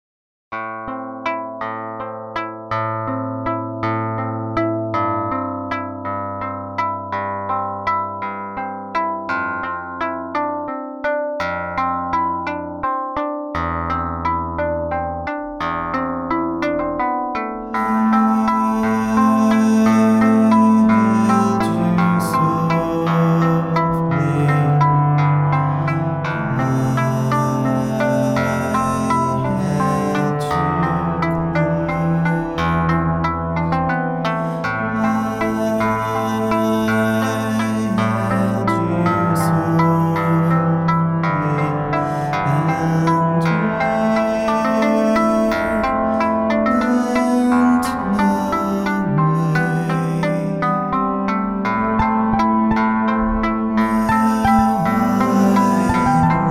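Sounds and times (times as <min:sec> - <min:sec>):
solo on a string: 0:00.5 - 0:56.4.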